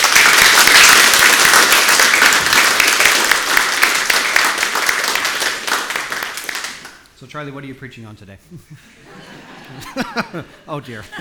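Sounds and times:
audience applause: 0.0 - 7.0
speech: 7.4 - 11.2
laughter: 8.4 - 11.2.

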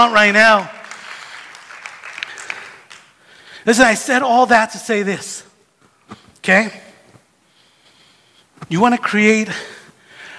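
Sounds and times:
speech: 0.0 - 0.8, 3.6 - 5.4, 6.4 - 6.8, 8.6 - 9.8
audience clapping: 0.5 - 3.3.

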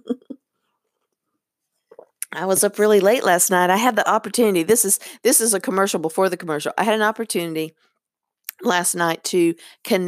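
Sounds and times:
person sipping soy milk coffee: 1.9 - 2.3
speech: 2.4 - 7.9, 8.6 - 10.0.

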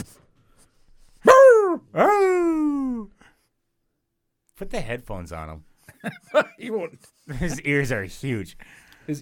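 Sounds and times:
dog barking: 1.3 - 2.2
dog howling: 1.3 - 2.5
speech: 4.8 - 9.2.

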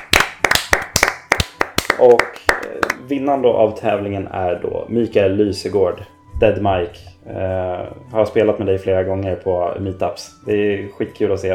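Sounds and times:
hand claps from a small number of people: 0.0 - 3.0
speech: 2.0 - 11.5.

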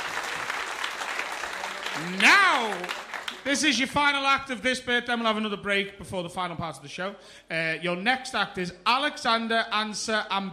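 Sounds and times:
audience applause: 0.0 - 3.5
speech: 2.0 - 10.5.

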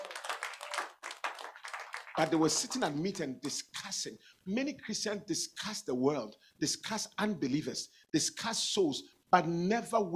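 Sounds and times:
crowd clapping together: 0.0 - 3.2
speech: 2.2 - 10.1.

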